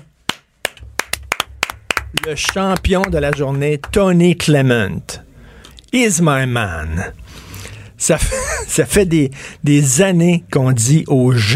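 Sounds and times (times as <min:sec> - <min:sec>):
people applauding in the control room: 0:00.0 - 0:04.6
speech: 0:02.2 - 0:05.2, 0:05.9 - 0:07.2, 0:08.0 - 0:11.5
laughter: 0:08.2 - 0:08.8.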